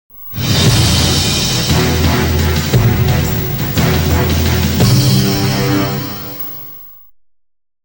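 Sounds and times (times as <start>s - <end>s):
jingle: 0.3s - 7.0s.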